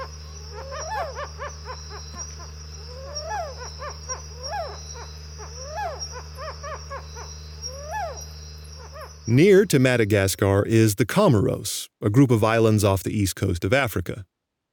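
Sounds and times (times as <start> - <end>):
white-browed owl calling in Madagascar: 0.0 - 10.6
speech: 9.3 - 14.3.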